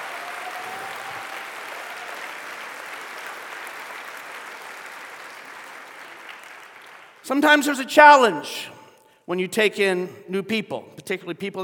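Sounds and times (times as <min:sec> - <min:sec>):
audience clapping: 0:00.0 - 0:07.8
speech: 0:07.3 - 0:11.6.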